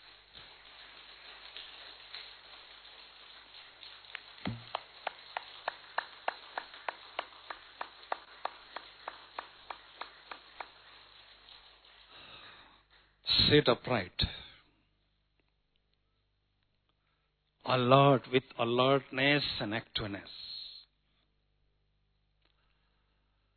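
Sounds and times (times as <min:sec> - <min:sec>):
hand claps: 0:00.0 - 0:13.2
speech: 0:13.5 - 0:14.4, 0:17.8 - 0:20.5.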